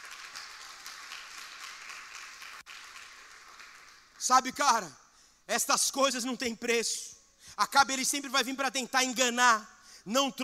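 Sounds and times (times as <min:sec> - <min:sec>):
audience applause: 0:00.0 - 0:04.2
speech: 0:04.2 - 0:10.4.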